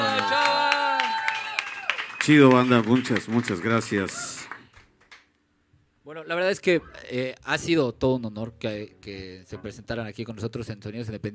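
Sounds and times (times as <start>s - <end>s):
audience applause: 0.0s - 5.3s
speech: 2.3s - 4.4s, 6.1s - 11.3s.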